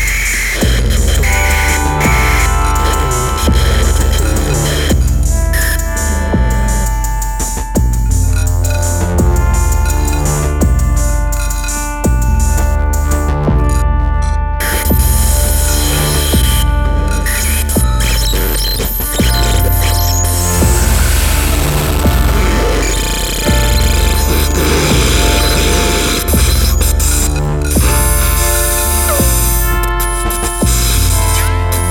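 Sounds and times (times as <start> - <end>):
dub music: 0.0 - 31.8
noise: 0.0 - 31.8.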